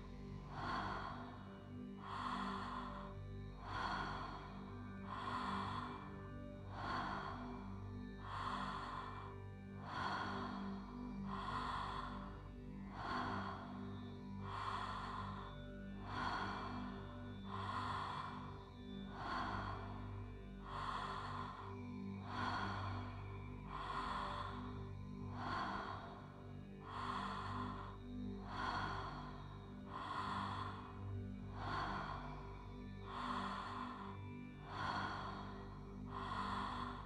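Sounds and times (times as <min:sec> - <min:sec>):
calm deep breathing: 0:00.0 - 0:37.0.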